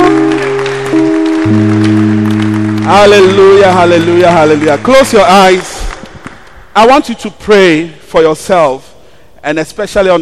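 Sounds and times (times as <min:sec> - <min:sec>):
audience applauding: 0:00.0 - 0:06.6
organ or keyboard chords: 0:00.0 - 0:07.3
speech: 0:02.9 - 0:05.7, 0:06.8 - 0:10.2.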